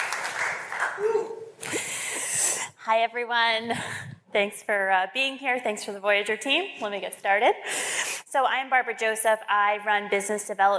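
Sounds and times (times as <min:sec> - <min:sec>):
audience applause: 0:00.0 - 0:01.5
speech: 0:02.9 - 0:10.7.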